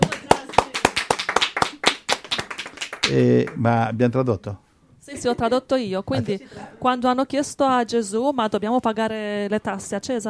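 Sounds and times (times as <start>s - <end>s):
small group applauding: 0.0s - 3.7s
speech: 3.1s - 10.2s.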